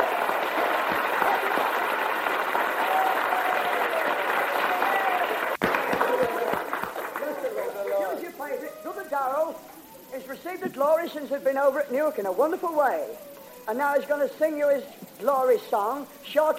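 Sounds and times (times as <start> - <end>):
audience clapping: 0.0 - 9.0
speech: 10.8 - 16.5.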